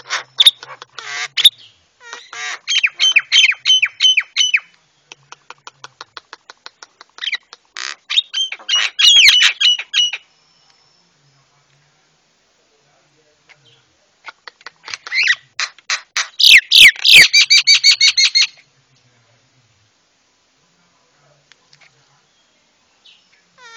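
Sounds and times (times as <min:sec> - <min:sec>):
Javan myna squawking and whistling: 0:00.0 - 0:04.7, 0:06.1 - 0:10.3, 0:14.4 - 0:18.6.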